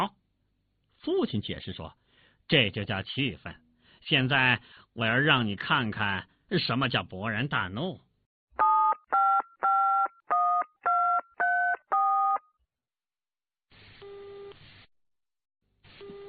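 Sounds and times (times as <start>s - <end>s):
speech: 1.0s - 8.0s
telephone number being dialed: 8.6s - 12.4s.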